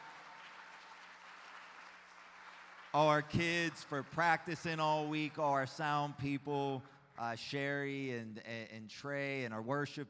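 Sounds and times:
audience clapping hands: 0.0s - 5.4s
speech: 2.9s - 10.0s.

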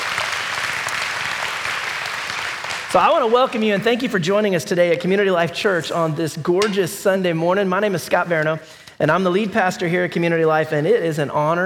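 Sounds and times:
audience applause: 0.0s - 3.6s
speech: 2.9s - 11.6s.

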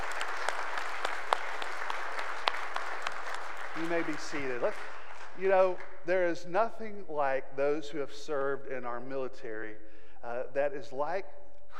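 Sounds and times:
audience applause: 0.0s - 5.4s
speech: 3.8s - 11.7s.

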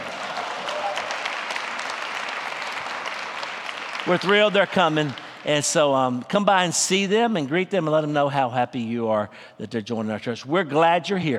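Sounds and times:
audience applause: 0.0s - 5.9s
speech: 4.0s - 11.3s.

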